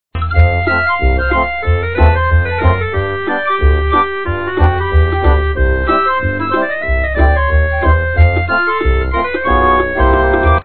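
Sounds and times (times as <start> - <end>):
happy dance music: 0.2 - 10.6.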